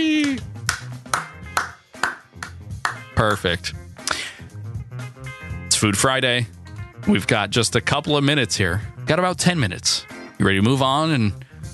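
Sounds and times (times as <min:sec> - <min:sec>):
slow clap sound effect: 0:00.1 - 0:03.4
speech: 0:03.2 - 0:03.8, 0:05.8 - 0:11.5.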